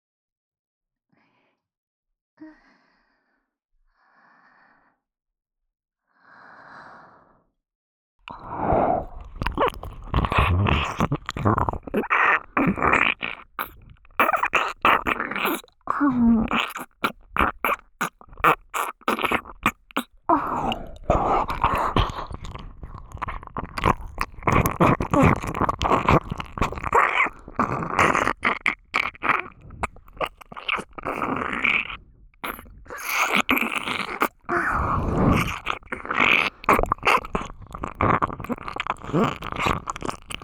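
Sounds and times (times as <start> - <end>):
intense ear licking in the right ear: 8.3 - 40.4.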